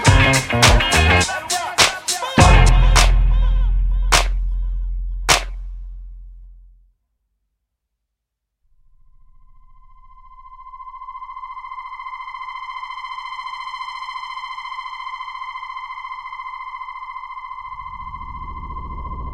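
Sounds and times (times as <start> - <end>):
instrumental music: 0.0 - 5.9.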